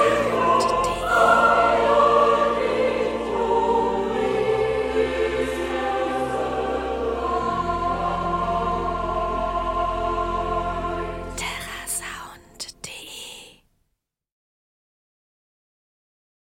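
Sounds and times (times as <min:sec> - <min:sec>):
choir singing: 0:00.0 - 0:12.2.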